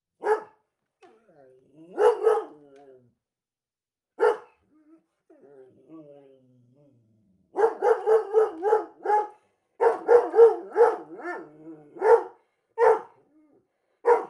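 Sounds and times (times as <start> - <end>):
German Shorthaired Pointer giving whining barks: 0.2 - 0.5, 1.8 - 2.8, 4.2 - 4.6, 7.5 - 13.2, 14.0 - 14.2.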